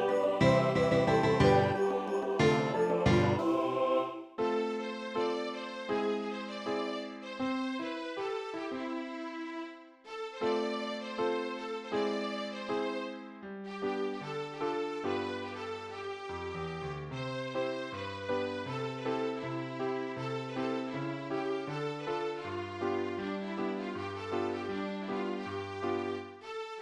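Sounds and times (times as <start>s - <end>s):
jingle bell: 0.0s - 3.8s
piano: 0.0s - 26.5s.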